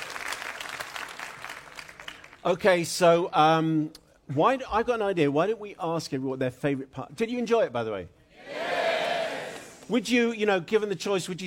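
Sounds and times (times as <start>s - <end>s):
audience round of applause: 0.0s - 2.4s
speech: 2.4s - 8.2s, 9.9s - 11.4s.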